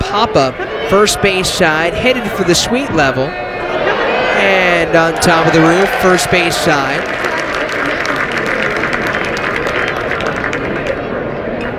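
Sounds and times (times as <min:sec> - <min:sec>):
speech: 0:00.1 - 0:03.4, 0:04.4 - 0:07.3
baseball crowd cheering and applauding: 0:03.5 - 0:11.2.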